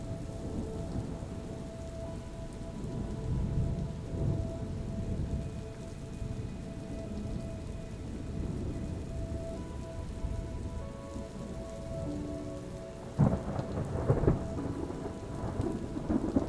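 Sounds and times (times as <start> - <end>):
soft sustained relaxing music notes: 0.0 - 16.4
steady rain: 0.0 - 16.4
thunder rumbling: 0.0 - 16.4
thunder cracks: 13.2 - 16.4.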